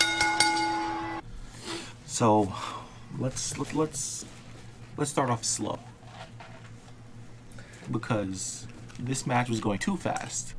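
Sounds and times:
metallic bell rung to start the match: 0.0s - 1.2s
speech: 2.2s - 4.4s, 5.0s - 5.9s, 7.9s - 10.5s.

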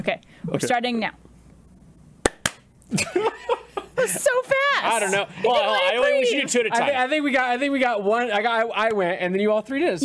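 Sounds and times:
speech: 0.0s - 1.2s, 2.9s - 10.0s
sharp hand claps: 2.2s - 2.7s.

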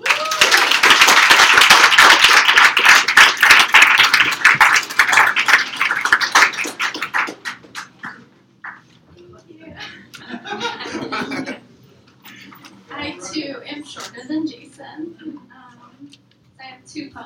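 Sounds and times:
audience applause for a poet at an open mic poetry night: 0.0s - 8.8s
laughter: 9.8s - 11.7s.

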